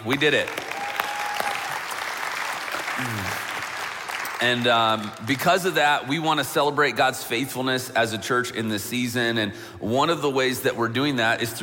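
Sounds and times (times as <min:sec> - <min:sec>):
speech: 0:00.0 - 0:00.6, 0:03.0 - 0:03.4, 0:04.4 - 0:11.6
church audience clapping: 0:00.0 - 0:05.5.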